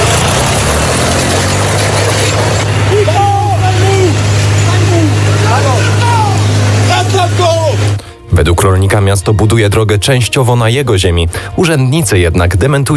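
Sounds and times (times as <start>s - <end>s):
tractor engine idling: 0.0s - 8.1s
speech: 8.4s - 12.9s.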